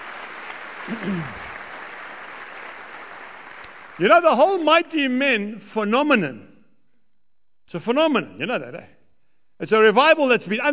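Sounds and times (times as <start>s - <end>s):
audience applause: 0.0s - 4.3s
speech: 0.9s - 1.5s, 4.0s - 6.5s, 7.7s - 9.0s, 9.6s - 10.7s.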